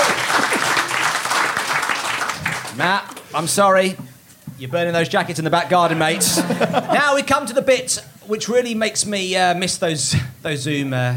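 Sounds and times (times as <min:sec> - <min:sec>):
audience applause: 0:00.0 - 0:03.3
speech: 0:02.8 - 0:11.1
laughter: 0:05.7 - 0:07.6.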